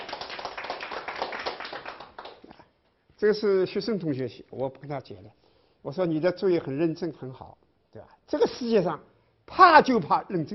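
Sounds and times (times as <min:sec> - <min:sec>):
audience clapping hands in a lecture: 0:00.0 - 0:02.7
speech: 0:03.2 - 0:10.5.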